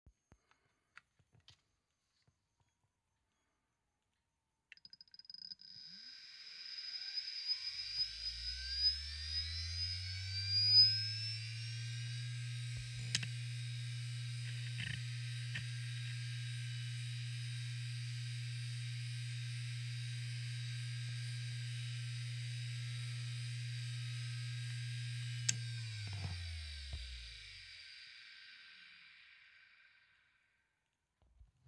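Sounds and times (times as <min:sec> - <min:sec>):
IBM DFHS SCSI 4GB hard drive powering on and off: 0:05.7 - 0:30.3.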